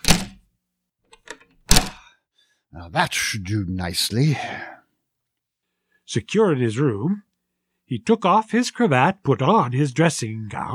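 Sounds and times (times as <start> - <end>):
door being double-locked: 0.0 - 0.4, 1.1 - 2.1
speech: 2.8 - 4.7, 6.1 - 7.3, 7.9 - 10.7.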